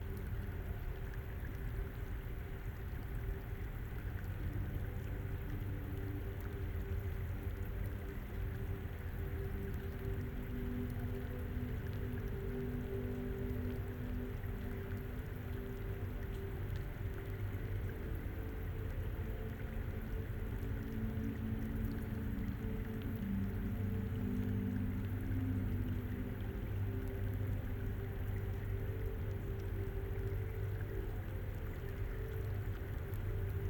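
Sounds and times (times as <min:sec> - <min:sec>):
waterfall: 0:00.0 - 0:33.6.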